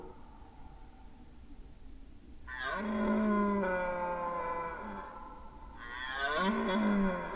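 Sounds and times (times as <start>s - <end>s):
red deer roaring during the rut: 2.5s - 7.3s.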